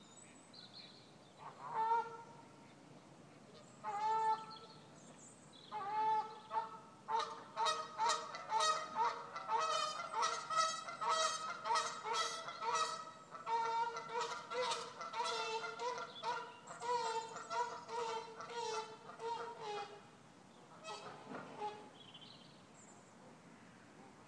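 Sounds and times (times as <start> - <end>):
Canada goose: 1.4 - 2.8, 3.5 - 4.7, 5.7 - 20.1, 20.7 - 22.0.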